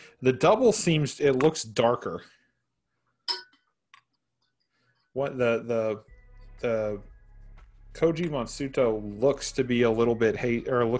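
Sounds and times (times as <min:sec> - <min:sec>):
speech: 0:00.2 - 0:02.4, 0:05.2 - 0:07.1, 0:08.0 - 0:10.9
glass clinking while being handled: 0:03.3 - 0:03.7.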